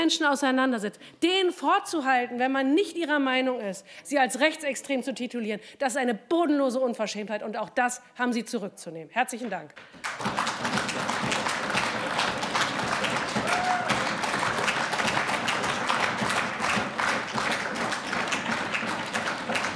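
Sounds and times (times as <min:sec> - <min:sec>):
speech: 0:00.0 - 0:10.4
applause in assembly: 0:09.8 - 0:19.7.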